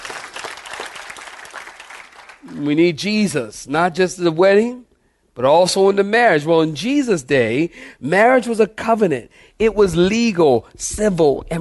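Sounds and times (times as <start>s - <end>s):
audience clapping hands: 0.0s - 2.7s
speech: 2.4s - 11.6s.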